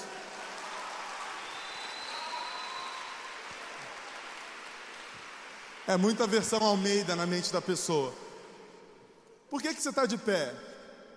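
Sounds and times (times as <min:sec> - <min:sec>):
audience applauding: 0:00.0 - 0:06.8
speech: 0:05.9 - 0:08.3, 0:09.5 - 0:10.7.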